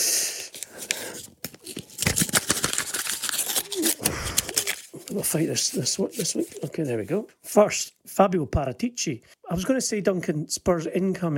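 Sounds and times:
paper tearing as a gold envelope is opened: 0.5s - 6.9s
speech: 5.2s - 11.3s.

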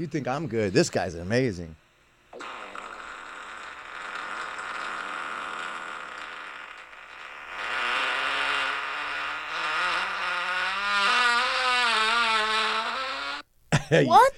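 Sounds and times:
speech: 0.0s - 1.8s, 13.9s - 14.3s
long juicy fart from a played video: 2.3s - 13.5s.

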